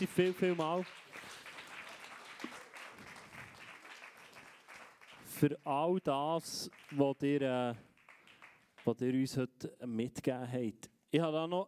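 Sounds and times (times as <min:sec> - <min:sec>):
speech: 0:00.0 - 0:01.2, 0:05.4 - 0:07.9, 0:08.8 - 0:11.6
audience applause: 0:00.0 - 0:05.5, 0:06.6 - 0:08.8.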